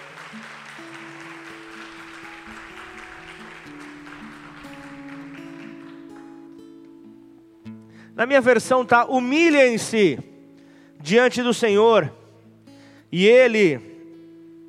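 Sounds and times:
audience applause: 0:00.0 - 0:06.5
speech: 0:08.2 - 0:10.3, 0:11.0 - 0:12.2, 0:13.1 - 0:13.9.

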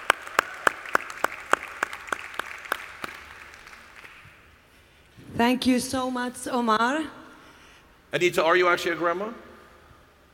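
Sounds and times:
steady evenly spaced sharp claps: 0:00.0 - 0:04.4
speech: 0:05.4 - 0:07.2, 0:08.1 - 0:09.4.

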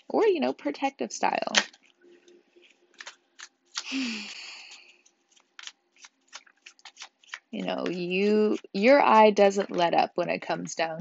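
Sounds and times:
speech: 0:00.1 - 0:01.8, 0:03.9 - 0:04.4, 0:07.7 - 0:11.0
tarot cards being shuffled: 0:01.5 - 0:11.0.

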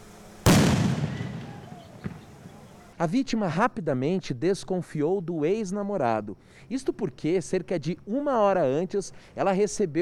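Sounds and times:
bomb squad detonating a suspicious box in Curitiba: 0:00.5 - 0:02.6
faint thump: 0:02.0 - 0:02.6
speech: 0:03.0 - 0:10.0.

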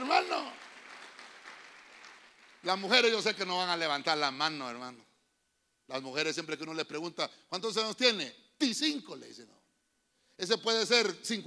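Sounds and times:
audience applauding: 0:00.0 - 0:03.4
speech: 0:02.6 - 0:05.1, 0:05.9 - 0:09.6, 0:10.4 - 0:11.4.

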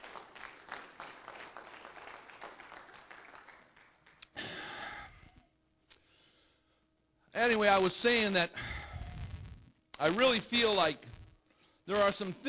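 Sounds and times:
audience hand clapping: 0:00.0 - 0:04.9
speech: 0:07.4 - 0:08.7, 0:10.0 - 0:11.1, 0:11.9 - 0:12.4.

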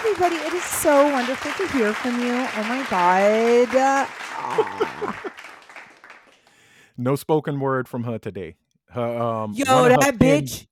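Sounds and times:
audience applause: 0:00.0 - 0:06.6
speech: 0:00.2 - 0:05.6, 0:07.0 - 0:10.6
laughter: 0:02.7 - 0:05.4, 0:09.1 - 0:10.4.

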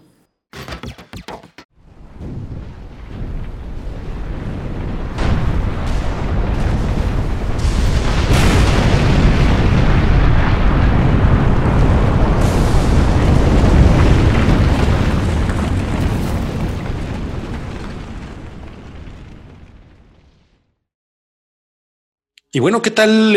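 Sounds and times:
eruption of volcano Popocatépetl: 0:01.9 - 0:20.4
speech: 0:22.6 - 0:23.3.

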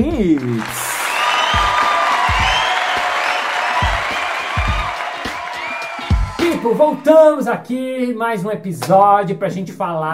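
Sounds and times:
audience applause and cheering: 0:00.0 - 0:07.6
speech: 0:00.1 - 0:00.8, 0:06.6 - 0:10.1.

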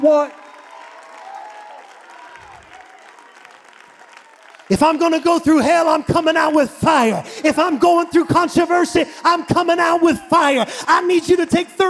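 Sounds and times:
speech: 0:00.0 - 0:00.4, 0:04.7 - 0:11.8
audience clapping hands: 0:00.0 - 0:06.2
crowd noise and scattered cheering: 0:00.0 - 0:11.8.

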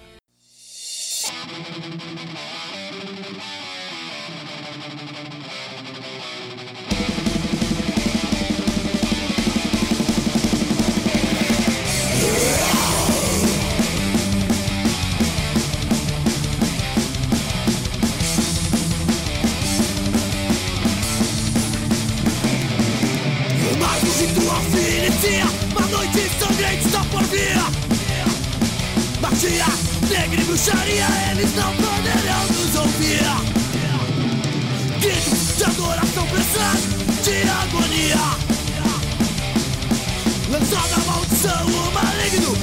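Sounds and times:
rock track with heavily distorted electric guitars played on radio: 0:00.0 - 0:00.2, 0:00.8 - 0:42.6.

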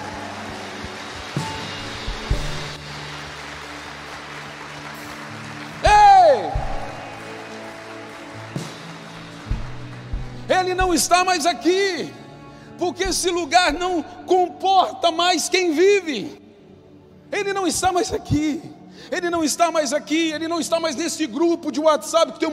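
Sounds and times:
audience applauding: 0:00.0 - 0:11.4
speech: 0:10.7 - 0:12.2, 0:12.8 - 0:16.4, 0:17.3 - 0:22.5.

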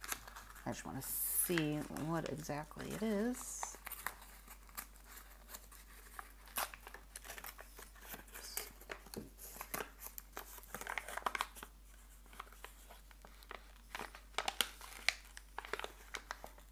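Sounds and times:
paper crinkling as a travel-themed subscription box package is unwrapped: 0:00.0 - 0:16.7
speech: 0:00.7 - 0:03.7.

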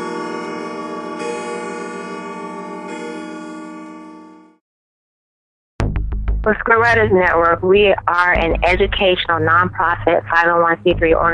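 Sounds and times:
grandfather clock chiming: 0:00.0 - 0:04.4
speech: 0:06.4 - 0:11.3.

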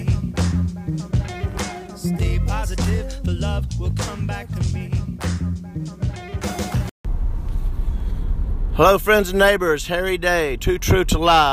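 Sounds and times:
music: 0:00.0 - 0:06.9
speech: 0:02.7 - 0:05.0, 0:08.8 - 0:11.5
car driving, road and engine noise heard from inside the vehicle: 0:07.0 - 0:11.5.

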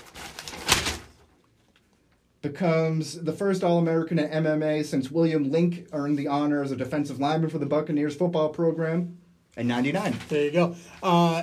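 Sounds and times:
newspaper being opened: 0:00.0 - 0:01.3, 0:09.8 - 0:10.7
speech: 0:02.4 - 0:11.4.

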